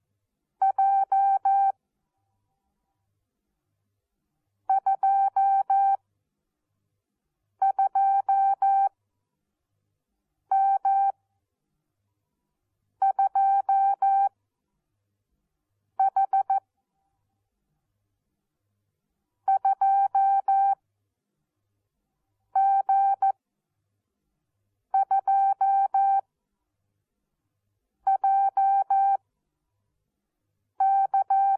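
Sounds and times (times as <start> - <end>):
morse code beeps: 0.6 - 1.7, 4.7 - 6.0, 7.6 - 8.9, 10.5 - 11.2, 13.0 - 14.3, 16.0 - 16.6, 19.5 - 20.8, 22.6 - 23.4, 25.0 - 26.2, 28.1 - 29.2, 30.8 - 31.5.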